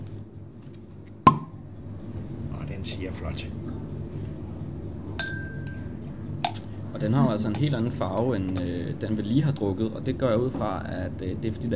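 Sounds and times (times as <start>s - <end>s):
low steady hum: 0.0s - 11.7s
bottle of lambic beer opened with a pop: 1.3s - 1.6s
speech: 2.8s - 3.8s, 7.0s - 11.7s.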